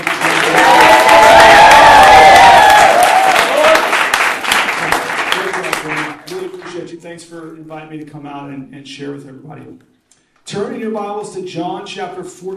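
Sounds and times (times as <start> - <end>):
audience applause: 0.0 - 6.8
speech: 7.9 - 12.5.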